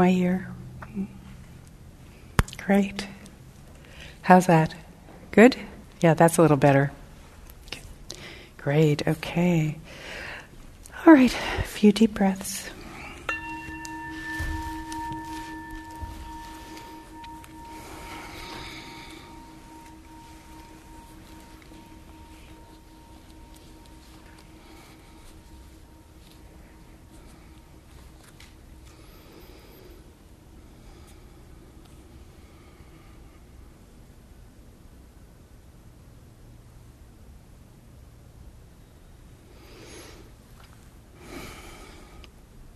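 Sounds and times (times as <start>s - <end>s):
speech: 0.0s - 1.2s, 2.7s - 3.2s, 4.2s - 7.0s, 8.6s - 10.0s, 11.0s - 12.8s
soft hiss: 0.0s - 42.7s
bell struck once, ringing: 13.3s - 29.8s.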